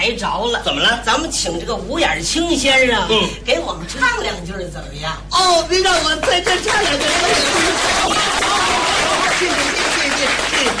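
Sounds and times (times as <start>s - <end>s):
speech: 0.0s - 10.7s
audience applause: 6.2s - 10.7s.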